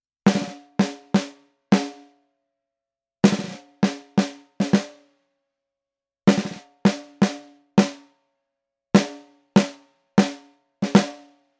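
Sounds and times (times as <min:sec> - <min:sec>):
quad snare drums recorded with SM 57 microphone: 0:00.3 - 0:02.0, 0:03.3 - 0:05.0, 0:06.3 - 0:08.0, 0:09.0 - 0:11.3.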